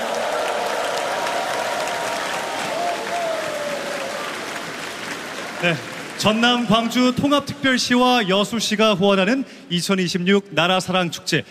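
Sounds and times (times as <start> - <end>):
audience applause: 0.0 - 7.4
speech: 5.6 - 11.5.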